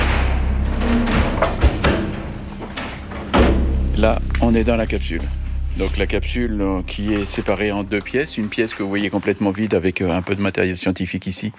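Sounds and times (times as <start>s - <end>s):
metallic knocks: 0.0s - 4.4s
heavy armored steel door shutting: 0.0s - 8.8s
rumble: 0.0s - 10.8s
speech: 4.0s - 11.5s.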